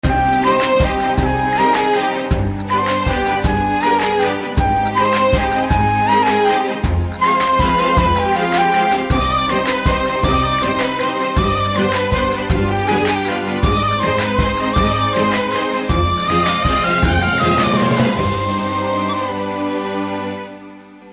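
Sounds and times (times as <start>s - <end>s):
love background music ringtone: 0.0s - 21.1s.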